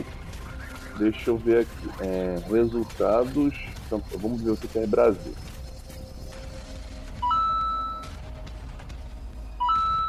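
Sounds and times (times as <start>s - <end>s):
speech: 1.0s - 5.5s
telephone beeping: 7.2s - 8.1s, 9.6s - 10.0s.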